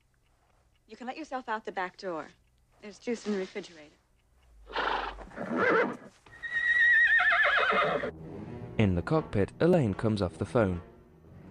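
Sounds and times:
speech: 0.9 - 4.0, 4.7 - 6.2, 7.8 - 10.9
horse neighing: 4.7 - 8.1.

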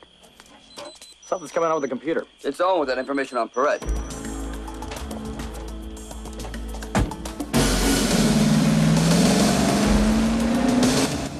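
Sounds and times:
speech: 1.3 - 4.0
armored car engine speeding along a dirt track: 5.0 - 11.3.

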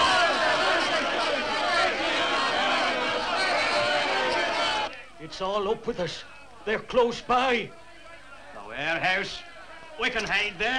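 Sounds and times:
crowd of townspeople murmuring and shouting: 0.0 - 10.7
speech: 5.4 - 7.8, 8.8 - 10.7.

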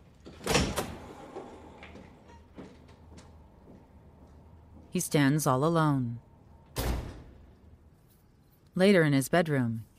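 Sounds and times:
door swinging shut: 0.3 - 1.1
speech: 5.0 - 6.3, 8.8 - 9.9.

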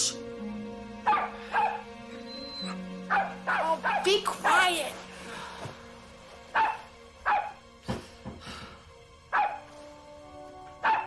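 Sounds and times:
collie dog barking: 1.0 - 1.9, 2.6 - 4.2, 6.5 - 7.6, 9.3 - 9.7, 10.8 - 11.0
speech: 4.1 - 5.1.

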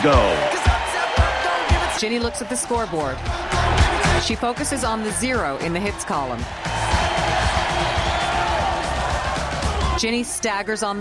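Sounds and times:
speech: 0.0 - 0.4, 2.0 - 6.9, 10.0 - 10.9
crowd cheering at a baseball game: 0.0 - 10.9.

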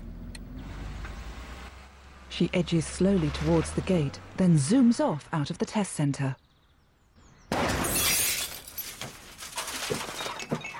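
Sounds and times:
speech: 2.3 - 6.4
car crashing into a milk float: 7.5 - 10.6
glass shattering: 7.5 - 10.7
pieces tinkling and clattering: 7.5 - 10.7.

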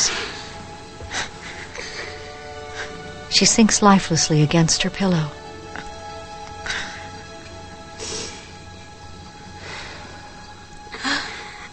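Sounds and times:
dying woman breathing raggedly in a drama: 0.0 - 3.3, 6.6 - 11.7
speech: 3.4 - 5.4.

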